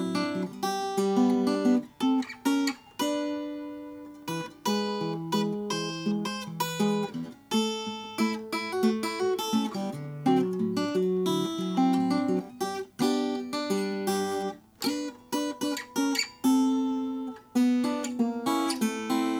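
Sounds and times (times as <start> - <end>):
1932 Oscar Schmidt Stella guitar in dark ebony: 0.0 - 19.3.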